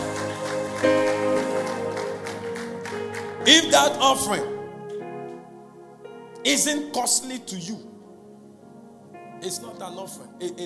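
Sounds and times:
audience clapping: 0:00.0 - 0:04.4
speech: 0:03.4 - 0:04.6, 0:06.5 - 0:07.9, 0:09.4 - 0:10.6.

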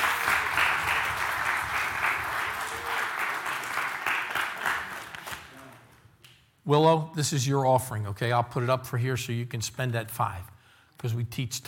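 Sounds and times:
audience applause: 0:00.0 - 0:05.8
speech: 0:06.7 - 0:11.6.

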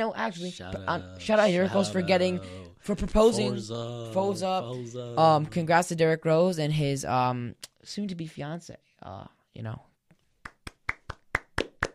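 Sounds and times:
speech: 0:00.0 - 0:09.9
studio audience clapping: 0:10.4 - 0:11.9.

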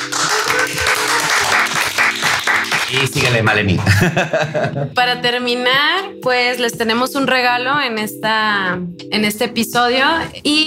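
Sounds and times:
applause: 0:00.0 - 0:03.6
laughter: 0:00.3 - 0:01.9, 0:03.0 - 0:05.0
speech: 0:03.0 - 0:10.6.

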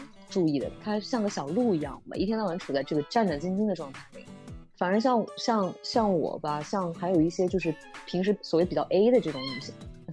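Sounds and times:
speech: 0:00.4 - 0:09.9
cat meowing after being stepped on: 0:09.3 - 0:09.8.

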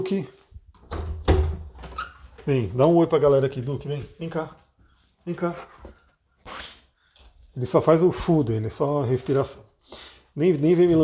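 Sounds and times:
speech: 0:00.0 - 0:00.4, 0:02.4 - 0:04.6, 0:05.2 - 0:05.8, 0:07.6 - 0:11.0
door opening: 0:00.7 - 0:02.8.

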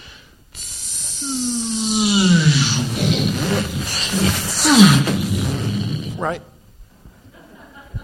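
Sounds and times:
voice imitating a spaceship taking off: 0:00.6 - 0:06.4
speech: 0:03.6 - 0:05.2, 0:06.2 - 0:06.5.

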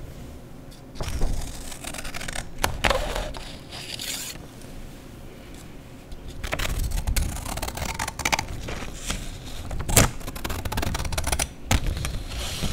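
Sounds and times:
paper tearing and crumpling: 0:01.0 - 0:04.4, 0:06.4 - 0:12.7
scissors cutting paper: 0:01.0 - 0:04.4, 0:06.5 - 0:08.5, 0:09.8 - 0:11.5.

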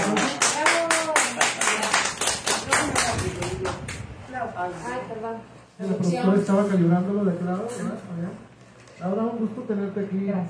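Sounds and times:
applause: 0:00.0 - 0:04.1
speech: 0:04.6 - 0:10.4.

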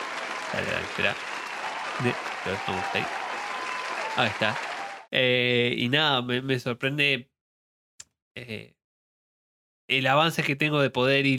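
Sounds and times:
applause with ovation: 0:00.0 - 0:05.1
speech: 0:00.5 - 0:01.4, 0:02.0 - 0:03.2, 0:04.2 - 0:07.3, 0:08.4 - 0:08.8, 0:09.9 - 0:11.3.

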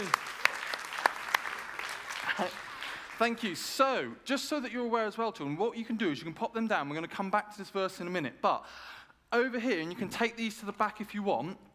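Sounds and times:
audience clapping for children: 0:00.0 - 0:03.9
speech: 0:02.4 - 0:11.7.

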